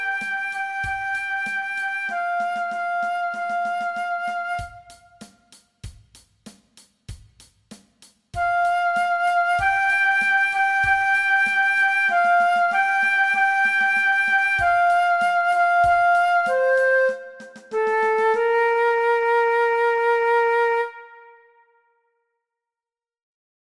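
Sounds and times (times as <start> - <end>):
adapted transverse flute play-along track: 0.0 - 5.6, 8.4 - 21.8.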